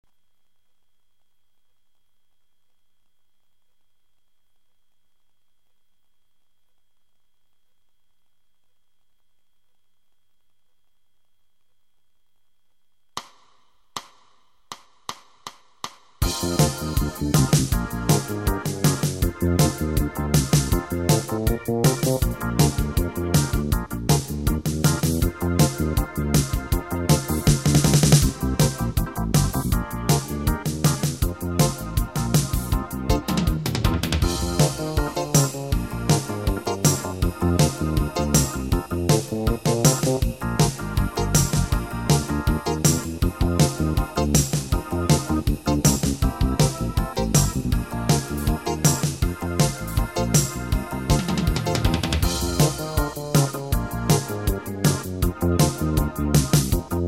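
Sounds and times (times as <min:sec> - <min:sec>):
blues backing track in F with eight-beat rhythm: 0:16.2 - 0:57.0.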